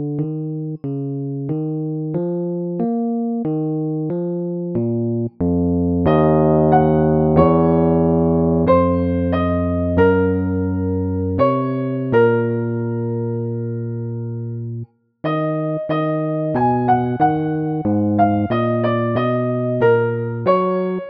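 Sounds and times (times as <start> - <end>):
bass solo: 0.0 - 21.0.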